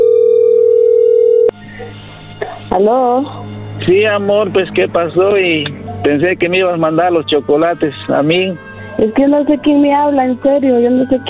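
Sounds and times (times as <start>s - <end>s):
telephone call-connecting tone: 0.0s - 1.6s
speech: 2.8s - 11.2s.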